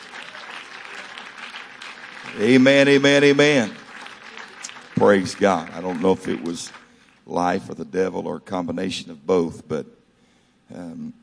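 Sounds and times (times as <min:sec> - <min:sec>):
audience clapping hands: 0:00.0 - 0:07.3
speech: 0:02.3 - 0:03.8, 0:05.0 - 0:10.0, 0:10.7 - 0:11.2.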